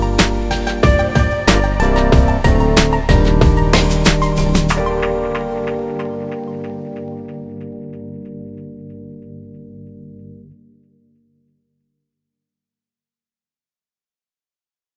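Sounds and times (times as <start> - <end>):
chillout hip hop music: 0.0 - 10.5.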